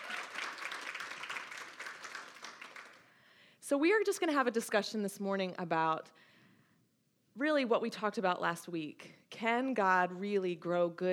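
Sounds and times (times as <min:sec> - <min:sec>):
audience applause: 0:00.0 - 0:03.0
speech: 0:03.7 - 0:06.3, 0:07.4 - 0:11.1.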